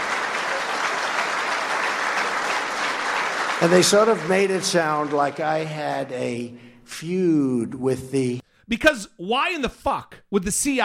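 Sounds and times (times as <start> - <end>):
audience applause at the CIA during a speech by Donald Trump: 0.0 - 6.1
speech: 3.6 - 10.8.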